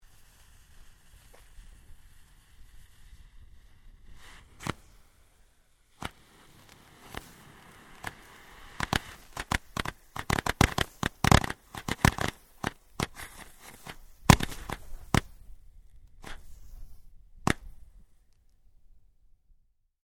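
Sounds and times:
variety of fireworks from a multi launcher detonating: 0.0 - 15.6.

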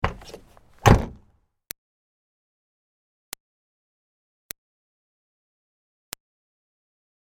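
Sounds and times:
Smart car door opening and closing fast: 0.0 - 1.3.

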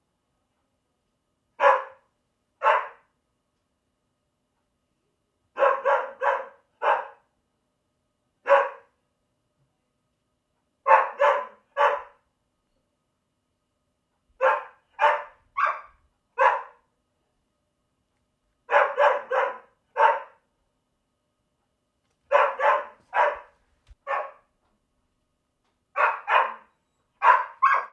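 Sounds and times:
dog barking: 1.6 - 3.1, 5.5 - 7.3, 8.4 - 9.0, 10.8 - 12.2, 14.4 - 16.9, 18.7 - 20.5, 22.3 - 24.5, 25.9 - 27.9.

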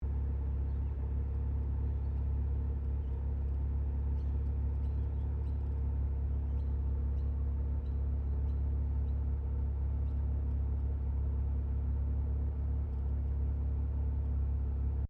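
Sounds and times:
Mazda RX7 Series 3 engine idling heard from interior: 0.0 - 15.0.

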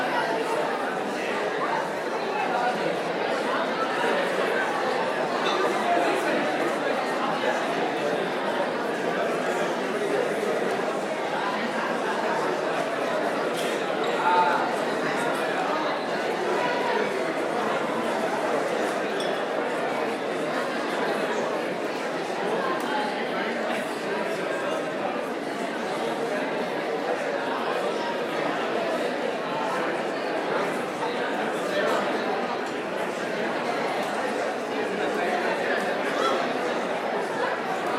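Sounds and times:
indoor crowd ambience at an auditorium event: 0.0 - 37.9.

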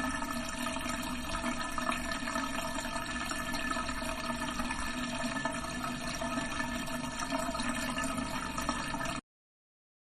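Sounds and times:
bathtub draining in a bathroom: 0.0 - 9.2.

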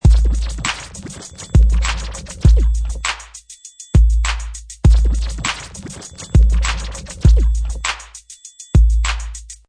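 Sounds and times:
fast vinyl scratching: 0.0 - 3.2, 4.2 - 8.1
hip hop beat: 0.0 - 9.6.

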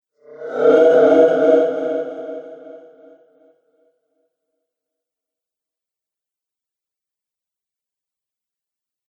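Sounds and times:
haunting magic spell: 0.3 - 2.9.

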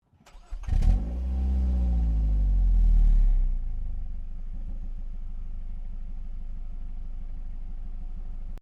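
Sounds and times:
Ford Focus car ignition: 0.2 - 1.7
Ford Focus car exhaust: 0.8 - 8.5.

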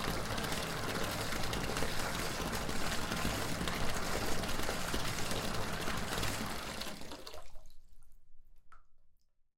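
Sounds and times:
water running into a household bathroom tub: 0.0 - 8.1.

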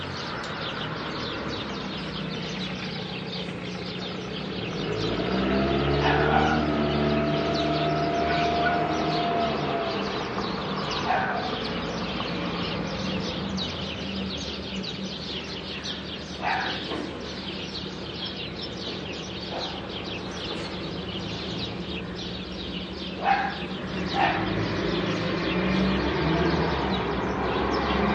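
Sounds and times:
rural ambience: 0.0 - 28.1.

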